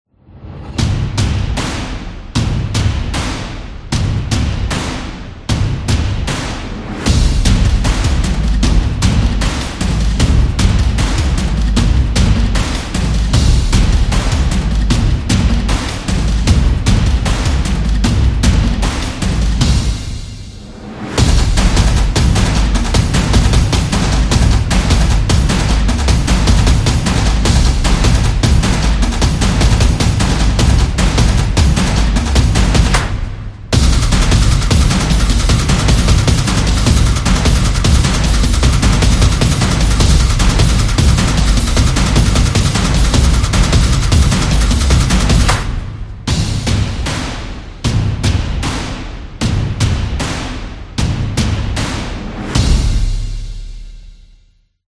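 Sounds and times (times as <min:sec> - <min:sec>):
drumming: 0:00.6 - 0:53.9.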